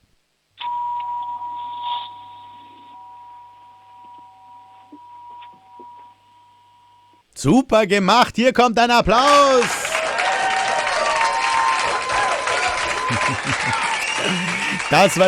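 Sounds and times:
doorbell ringing: 0.6 - 6.6
speech: 7.4 - 9.8, 14.2 - 15.2
laughter: 9.3 - 15.2.

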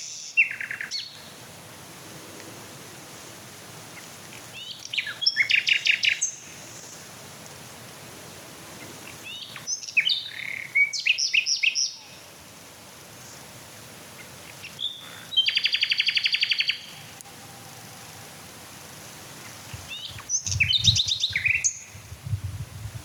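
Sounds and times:
Common Nightingale song: 0.0 - 1.2, 4.6 - 7.0, 9.2 - 12.2, 14.5 - 17.6, 19.4 - 23.0.

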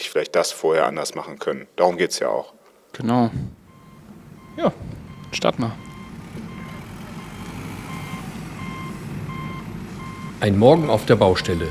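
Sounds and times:
speech: 0.1 - 3.6, 4.6 - 6.5, 10.4 - 11.6
heavy wheel loader diesel engine rumbling while reversing: 3.1 - 11.6
wheel loader backup alarm beeping: 3.4 - 11.6.

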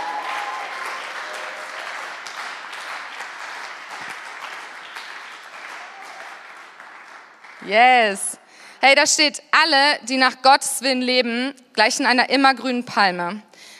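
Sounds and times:
audience applause: 0.0 - 7.7
speech: 7.6 - 13.7.

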